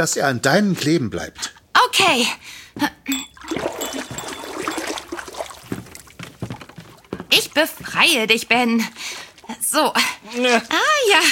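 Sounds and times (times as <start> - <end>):
speech: 0.0 - 3.3, 7.6 - 11.3
fingers dipped in a water bowl: 3.1 - 6.1.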